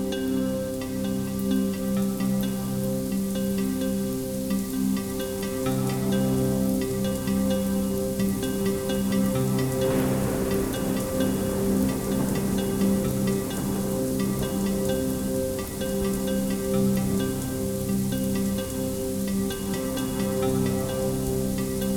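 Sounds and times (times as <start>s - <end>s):
gentle droplets: 0.0s - 21.9s
thunderstorm: 7.9s - 21.9s.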